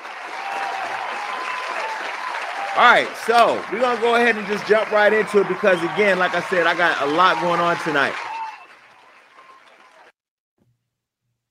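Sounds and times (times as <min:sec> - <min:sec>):
canned crowd applause from a button: 0:00.0 - 0:10.2
speech: 0:02.8 - 0:08.3.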